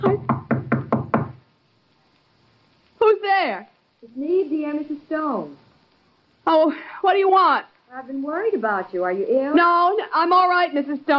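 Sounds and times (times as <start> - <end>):
knocking on a door: 0.0 - 1.4
speech: 3.4 - 5.6, 6.5 - 11.1.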